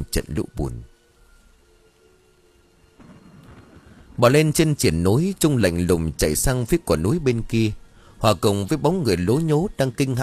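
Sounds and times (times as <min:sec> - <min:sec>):
speech: 0:00.0 - 0:00.9, 0:04.2 - 0:10.2
forest rain: 0:00.0 - 0:10.2
earth and rocks tumbling down: 0:03.0 - 0:05.6
mountain thunder: 0:03.0 - 0:05.7.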